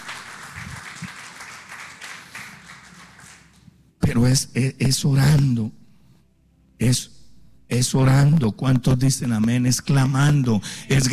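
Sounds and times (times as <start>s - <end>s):
audience applause: 0.0s - 3.7s
speech: 4.1s - 5.8s, 6.8s - 11.1s.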